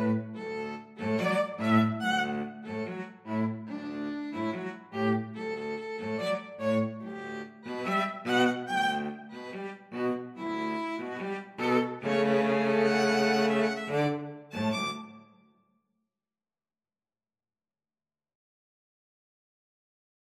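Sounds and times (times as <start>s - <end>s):
violin and cello duet: 0.0s - 15.2s.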